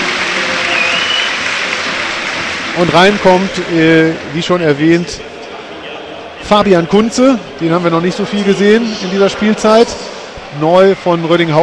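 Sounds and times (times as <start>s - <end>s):
stadium crowd at a football match giving a standing ovation: 0.0s - 5.0s, 7.8s - 11.6s
speech: 2.8s - 5.3s, 6.4s - 10.0s, 10.6s - 11.6s.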